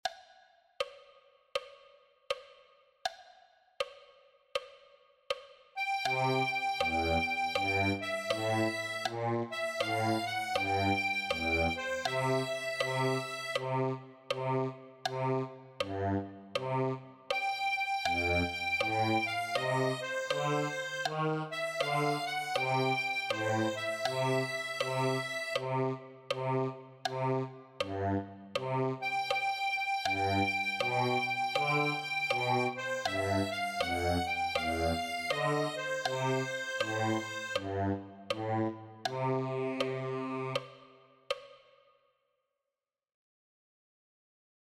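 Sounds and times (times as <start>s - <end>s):
accordion: 5.8s - 40.6s.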